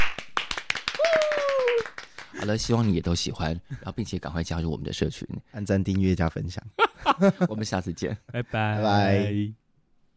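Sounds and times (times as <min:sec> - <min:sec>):
applause: 0:00.0 - 0:03.0
speech: 0:02.4 - 0:09.6.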